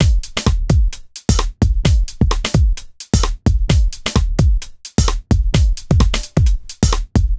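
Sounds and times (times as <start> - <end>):
lounge house loop at 130 bpm: 0.0 - 7.3.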